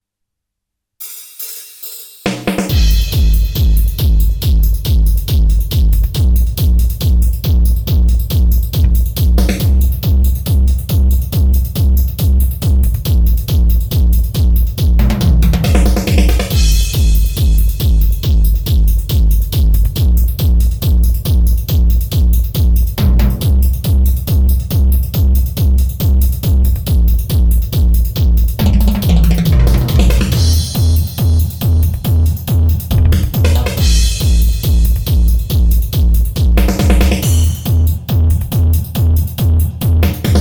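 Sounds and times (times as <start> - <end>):
train drum beat: 1.0 - 40.3.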